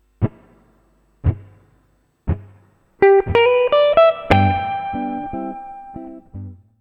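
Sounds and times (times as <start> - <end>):
musical lick: 2.3 - 6.6.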